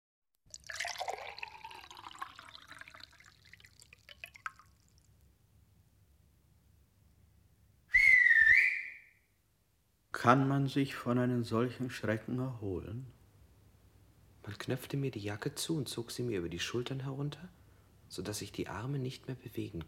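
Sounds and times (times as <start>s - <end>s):
water poured into a glass for an accused man during an interrogation: 0.5s - 5.1s
speech: 10.2s - 13.2s, 14.5s - 19.8s.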